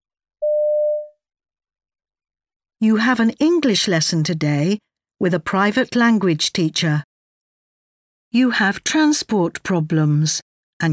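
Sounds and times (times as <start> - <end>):
voicemail recording tone beep: 0.4 - 1.2
speech: 2.8 - 7.1, 8.3 - 10.9.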